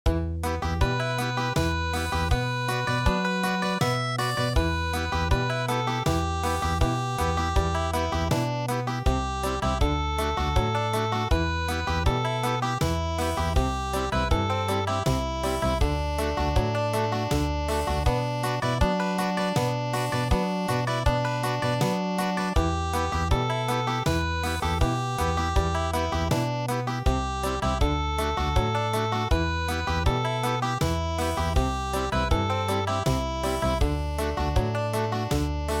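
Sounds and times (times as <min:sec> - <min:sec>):
country midi music: 0:00.1 - 0:35.7.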